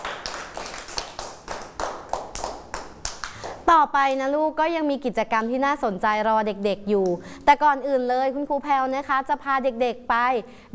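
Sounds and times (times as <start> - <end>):
children clapping hands: 0.0 - 3.6
speech: 3.7 - 10.7.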